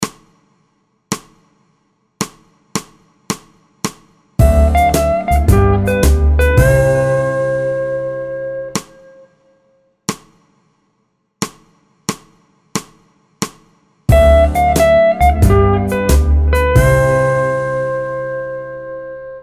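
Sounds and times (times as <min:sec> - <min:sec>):
musical vamp in C in four four: 0:04.4 - 0:09.2, 0:14.1 - 0:19.4.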